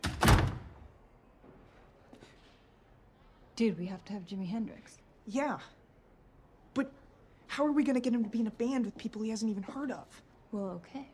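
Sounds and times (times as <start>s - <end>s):
dressing room door being shut: 0.0s - 0.9s
speech: 3.6s - 5.8s, 6.8s - 7.0s, 7.6s - 11.1s.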